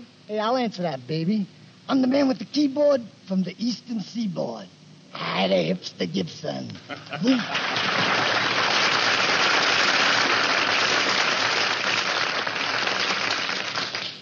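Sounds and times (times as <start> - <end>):
speech: 0.3 - 8.4
audience applause: 7.3 - 14.2.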